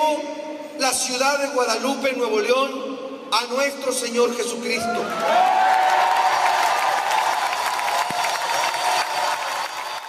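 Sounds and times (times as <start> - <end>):
speech: 0.1 - 6.1
whoops: 4.8 - 10.0
crowd cheering and applauding in Guadalupe, Nuevo León: 4.9 - 10.0.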